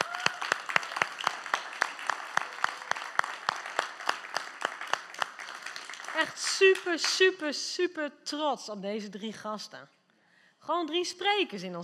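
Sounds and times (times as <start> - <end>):
audience applause: 0.0 - 6.8
speech: 6.4 - 10.0, 10.6 - 11.8.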